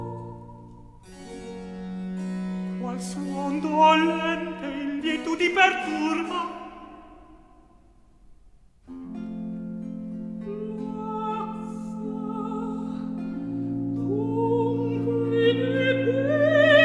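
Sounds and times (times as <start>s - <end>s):
dialogue sung in recitative: 0.0s - 1.0s, 2.7s - 7.6s, 10.4s - 16.8s.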